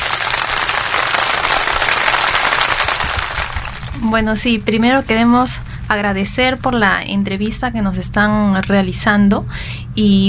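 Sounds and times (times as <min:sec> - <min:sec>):
applause for guests: 0:00.0 - 0:04.0
speech: 0:04.0 - 0:10.2.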